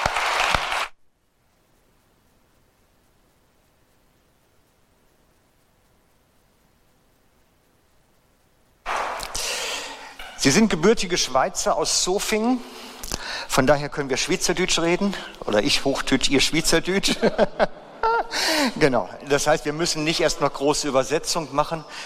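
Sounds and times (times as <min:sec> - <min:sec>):
audience applause welcoming guests on stage: 0:00.0 - 0:00.9
speech: 0:10.4 - 0:12.8, 0:13.5 - 0:22.0
laughter: 0:17.0 - 0:18.7.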